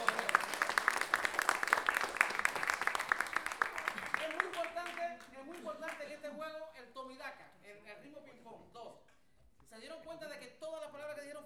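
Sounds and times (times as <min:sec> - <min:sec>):
audience applause: 0:00.0 - 0:06.0.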